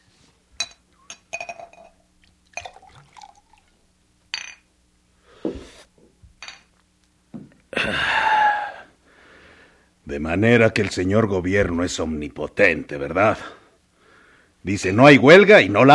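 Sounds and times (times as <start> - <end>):
glass clinking while pouring tequila: 0.6 - 3.6, 4.3 - 4.7, 6.4 - 6.7
tequila splashing into a glass: 2.2 - 3.8
speech: 10.1 - 13.6, 14.6 - 15.9.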